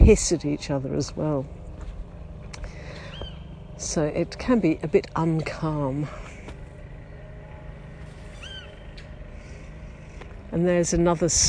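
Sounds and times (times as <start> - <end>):
speech: 0.0 - 1.6, 3.8 - 6.2, 10.5 - 11.4
lawnmower running: 0.0 - 11.4.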